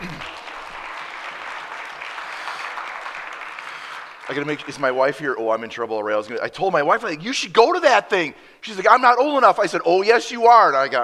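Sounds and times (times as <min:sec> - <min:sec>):
church gathering audience applauding a pastor: 0:00.0 - 0:05.4
speech: 0:04.3 - 0:11.0.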